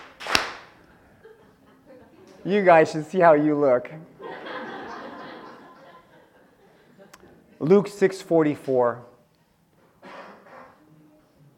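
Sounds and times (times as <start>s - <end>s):
audience clapping hands: 0.0s - 0.8s
laughter: 0.8s - 2.5s, 4.1s - 7.9s
speech: 2.4s - 4.1s, 7.6s - 9.1s.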